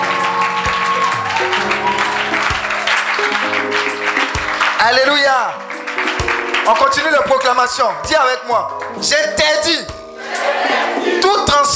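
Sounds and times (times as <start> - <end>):
congregation clapping to acclaim God during a church service: 0.0 - 8.7
sustained keyboard chords: 0.0 - 11.7
speech: 4.8 - 5.7, 6.7 - 11.7.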